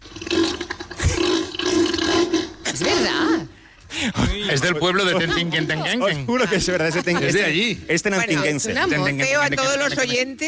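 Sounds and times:
grunts of a sea animal: 0:00.1 - 0:03.5
laughter: 0:04.0 - 0:07.8
speech: 0:04.5 - 0:10.4.

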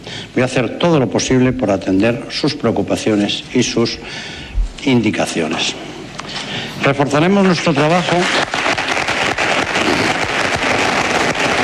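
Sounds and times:
speech: 0:00.4 - 0:06.0, 0:06.8 - 0:08.5
audience applause at election closing event: 0:07.7 - 0:11.6.

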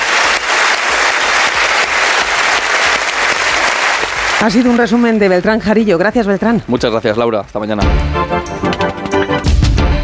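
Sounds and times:
Cannes Film Festival audience ovation: 0:00.0 - 0:05.4
speech: 0:04.4 - 0:09.0.

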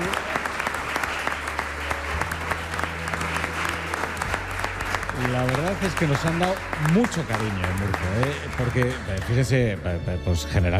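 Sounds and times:
audience applause: 0:00.0 - 0:09.8
speech: 0:05.8 - 0:10.7.

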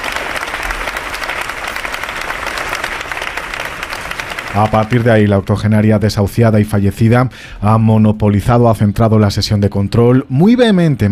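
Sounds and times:
crowd applause: 0:00.0 - 0:05.5
speech: 0:04.5 - 0:11.1.

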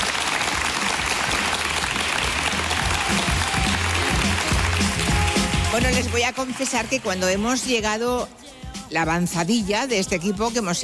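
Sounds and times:
audience applause: 0:00.0 - 0:07.2
speech: 0:05.8 - 0:10.8.

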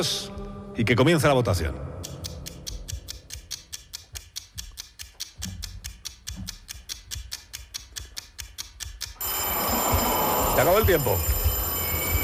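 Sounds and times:
speech: 0:00.0 - 0:01.9, 0:10.7 - 0:11.3
mechanical ticking: 0:02.0 - 0:12.2
vintage bell ringing: 0:09.2 - 0:12.2.

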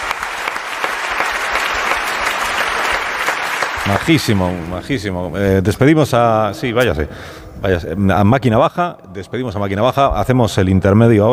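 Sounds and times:
audience applause: 0:00.0 - 0:05.2
speech: 0:03.9 - 0:11.3.

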